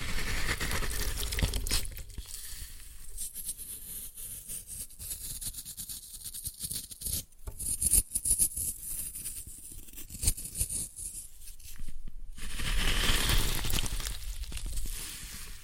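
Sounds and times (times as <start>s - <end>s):
floral foam crushed and torn: 0.0s - 2.3s, 12.4s - 15.2s.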